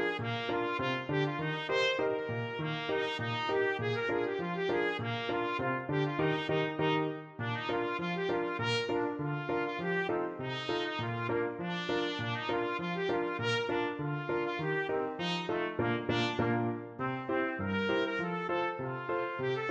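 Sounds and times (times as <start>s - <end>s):
polka music: 0.0s - 19.7s
trumpet: 0.0s - 19.7s.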